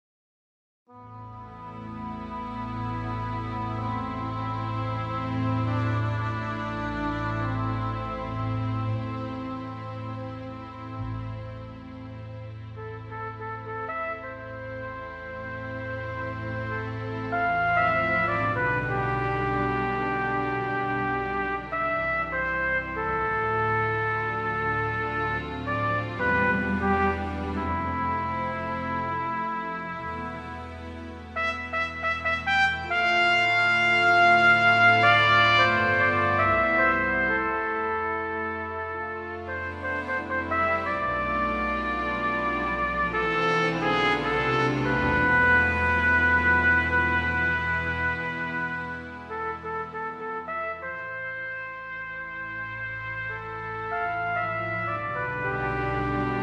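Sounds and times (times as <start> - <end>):
trumpet: 0.9 - 56.4.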